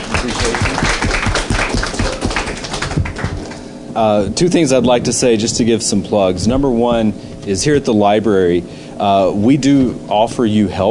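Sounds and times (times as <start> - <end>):
audience applause: 0.0 - 3.7
speech: 0.2 - 0.8, 4.0 - 10.9.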